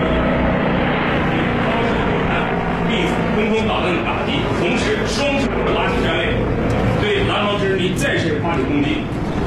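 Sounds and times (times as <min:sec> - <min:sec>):
dozens of military helicopters flying in combat formation at very low altitude: 0:00.0 - 0:09.4.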